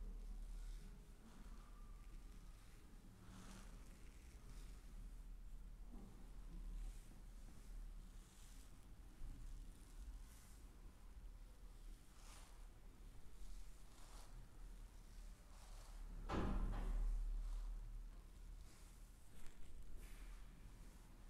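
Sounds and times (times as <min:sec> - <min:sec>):
chair massage rubbing and brushing strokes: 0:00.0 - 0:21.2.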